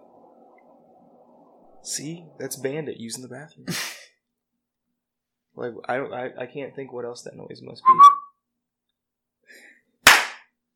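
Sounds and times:
speech: 1.8s - 4.0s, 5.6s - 8.2s
hand clap to shoo a dog: 10.0s - 10.5s.

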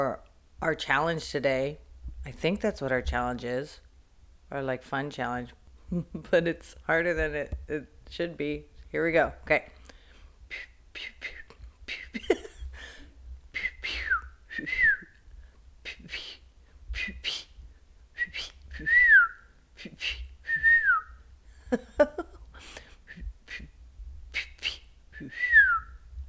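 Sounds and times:
speech: 0.0s - 3.8s, 4.5s - 9.8s
person whistling imitation bird calls: 13.6s - 15.2s, 18.2s - 21.2s, 24.4s - 26.0s.

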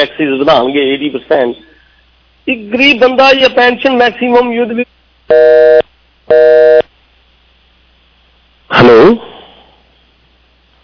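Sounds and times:
speech: 0.0s - 1.7s, 2.4s - 6.5s
telephone busy tone after a call line disconnected: 5.3s - 6.9s.

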